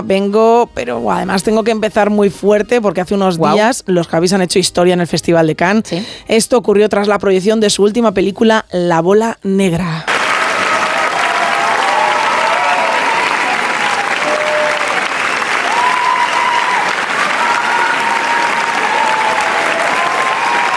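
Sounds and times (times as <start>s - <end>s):
speech: 0.0s - 10.1s
standing ovation applause at film festival: 10.1s - 20.7s.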